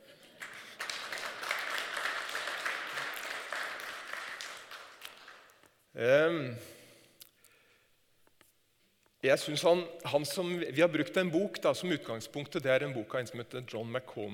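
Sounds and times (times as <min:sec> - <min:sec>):
applause: 0:00.0 - 0:05.7
speech: 0:06.0 - 0:06.8, 0:09.2 - 0:14.3.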